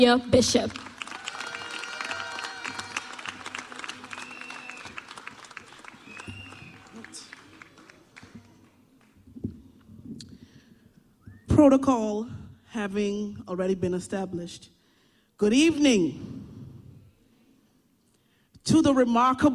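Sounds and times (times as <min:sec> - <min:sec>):
speech: 0:00.0 - 0:00.9, 0:11.6 - 0:14.8, 0:15.4 - 0:16.3, 0:18.6 - 0:19.5
audience applause welcoming a guest speaker at a graduation ceremony: 0:00.4 - 0:09.9.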